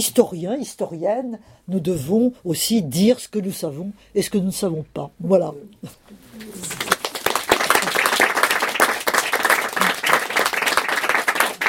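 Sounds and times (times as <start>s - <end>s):
speech: 0.0s - 6.8s
audience applause: 6.6s - 11.6s.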